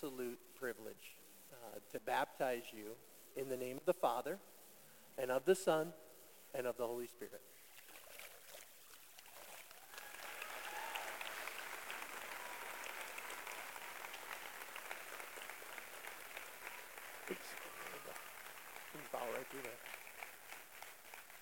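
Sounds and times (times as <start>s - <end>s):
speech: 0.0s - 4.6s, 5.2s - 7.6s, 19.4s - 20.0s
audience applause: 9.6s - 21.4s.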